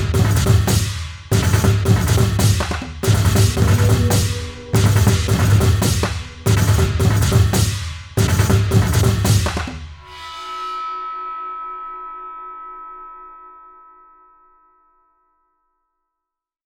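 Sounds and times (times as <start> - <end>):
East Asian percussion kit: 0.0 - 10.0.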